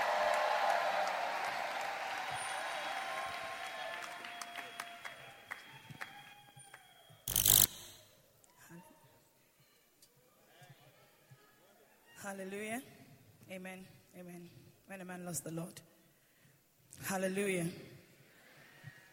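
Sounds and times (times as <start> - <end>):
audience clapping: 0.0 - 6.8
speech: 12.3 - 15.9, 17.0 - 17.9.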